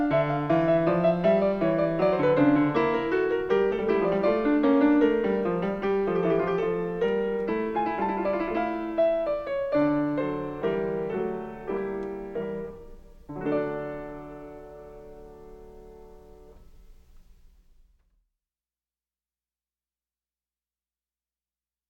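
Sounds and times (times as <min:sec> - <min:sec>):
fugue in D minor: 0:00.0 - 0:14.7.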